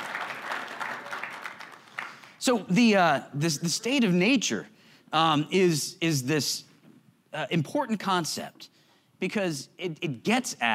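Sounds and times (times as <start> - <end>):
classroom applause: 0.0 - 2.4
speech: 2.4 - 6.7, 7.3 - 10.7.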